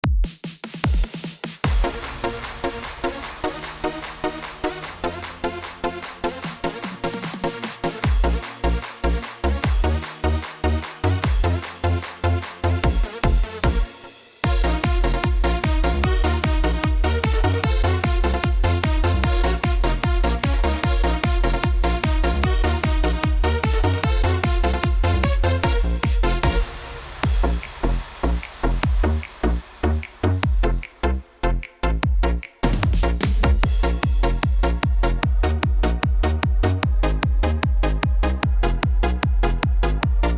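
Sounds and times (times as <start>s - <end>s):
Yamaha keyboard accompaniment style: 1.7s - 40.3s.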